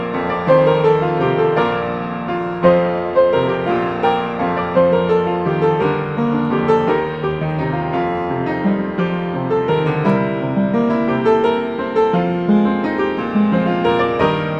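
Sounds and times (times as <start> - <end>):
piano: 0.0 - 14.5.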